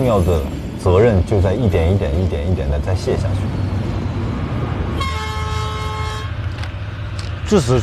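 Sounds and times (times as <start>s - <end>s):
speech: 0.0s - 3.6s, 7.5s - 7.8s
train rumbling: 0.0s - 7.8s
harmonic train horn blast: 5.0s - 6.4s.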